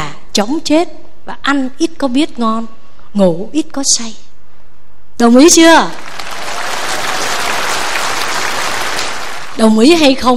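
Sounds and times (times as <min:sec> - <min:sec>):
speech: 0:00.4 - 0:04.2, 0:05.2 - 0:06.1, 0:09.6 - 0:10.3
audience clapping at a Buddhist monk's Dharma talk: 0:05.8 - 0:10.0.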